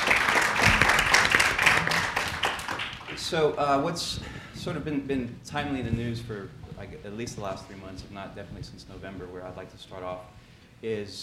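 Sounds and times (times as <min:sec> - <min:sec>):
audience applause: 0:00.0 - 0:03.6
speech: 0:03.3 - 0:11.2.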